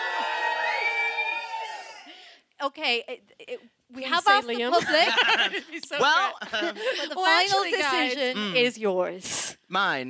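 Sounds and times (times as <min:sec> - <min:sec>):
audience cheering and shouting: 0:00.0 - 0:02.1
speech: 0:02.6 - 0:10.0
laughter: 0:04.6 - 0:08.4.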